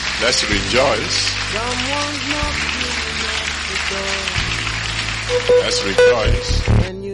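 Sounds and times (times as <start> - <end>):
crowd clapping: 0.0 - 6.9
speech: 0.2 - 3.0, 3.9 - 4.4, 5.3 - 7.0
sustained low organ or keyboard tones: 5.1 - 6.9.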